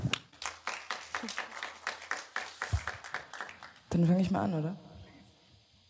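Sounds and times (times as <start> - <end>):
audience applause: 0.0 - 3.9
speech: 4.0 - 4.9.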